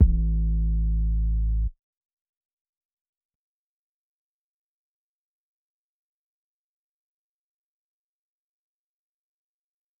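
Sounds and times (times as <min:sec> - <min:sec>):
808 drum machine: 0:00.0 - 0:00.8.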